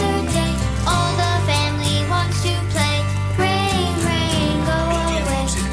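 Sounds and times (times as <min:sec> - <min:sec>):
child solo vocal: 0:00.0 - 0:05.6.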